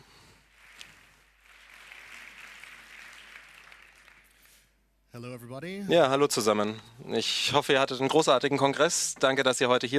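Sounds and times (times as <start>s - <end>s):
audience applause: 0.5s - 4.6s
speech: 5.2s - 9.9s.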